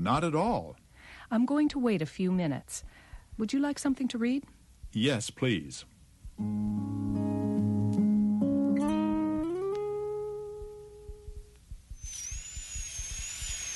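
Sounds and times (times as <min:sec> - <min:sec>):
speech: 0:00.0 - 0:07.8
steady stepping tones: 0:02.8 - 0:03.5, 0:06.2 - 0:13.5
dentist's drill drilling out an old filling: 0:11.9 - 0:13.7.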